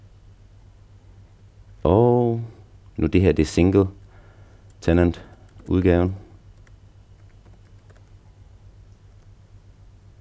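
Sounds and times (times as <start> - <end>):
speech: 3.0 - 4.0, 4.8 - 6.2
typing on a computer keyboard: 5.3 - 5.8, 6.6 - 8.2.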